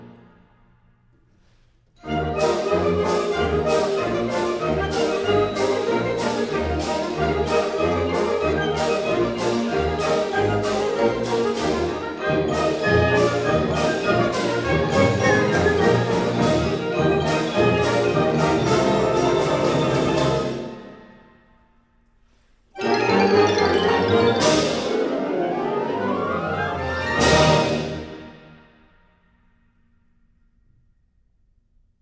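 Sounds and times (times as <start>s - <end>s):
wind ensemble playing: 2.0s - 21.4s, 22.8s - 28.6s.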